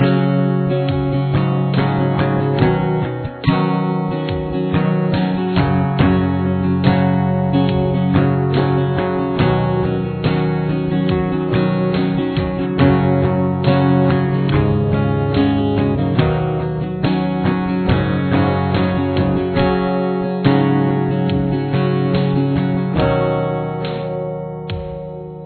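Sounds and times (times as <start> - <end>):
guitar with chorus effect: 0.0 - 25.4.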